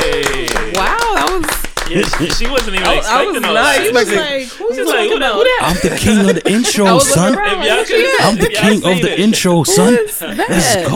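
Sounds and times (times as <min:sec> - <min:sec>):
audience clapping: 0:00.0 - 0:04.4
laughter: 0:00.0 - 0:10.9
speech: 0:02.0 - 0:10.9.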